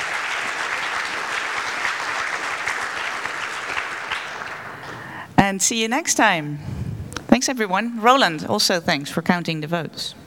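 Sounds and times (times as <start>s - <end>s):
audience applause at a meeting: 0.0s - 5.2s
speech: 5.5s - 6.7s, 7.4s - 10.2s.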